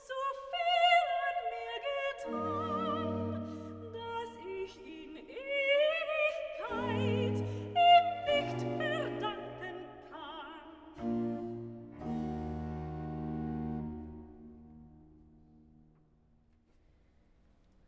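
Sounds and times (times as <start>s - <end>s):
soprano singing recitative: 0.0s - 13.8s.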